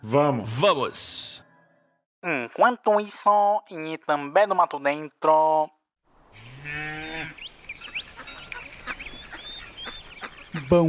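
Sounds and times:
speech: 0.0 - 1.4, 2.2 - 5.8, 10.6 - 10.8
cow mooing: 6.3 - 7.4.

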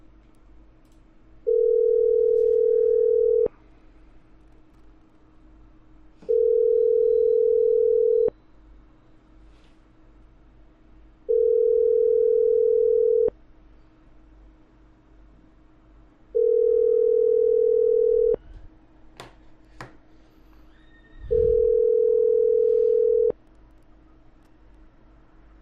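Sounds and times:
unanswered phone call ringback tones: 1.5 - 3.5, 6.2 - 8.3, 11.3 - 13.3, 16.4 - 18.4, 21.3 - 23.4.

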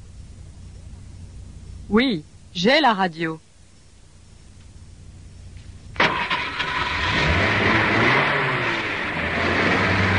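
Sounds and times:
speech: 1.9 - 3.4
car engine starting and revving: 6.0 - 10.1.

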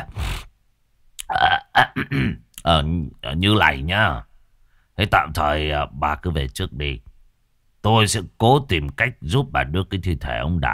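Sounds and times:
throat clearing: 1.2 - 2.5
speech: 1.8 - 4.3, 5.0 - 7.1, 7.8 - 10.7.

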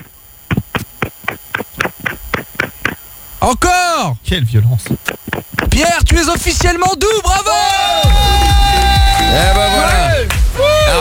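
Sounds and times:
mobile phone tapped against a person's head: 0.0 - 3.0, 4.9 - 7.0
speech: 3.4 - 5.2, 5.8 - 11.0.

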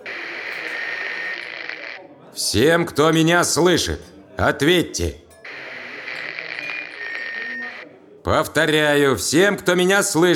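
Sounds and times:
radio static as tuning dial is turned: 0.0 - 2.1, 5.5 - 7.9
speech: 2.4 - 5.2, 8.3 - 10.3.

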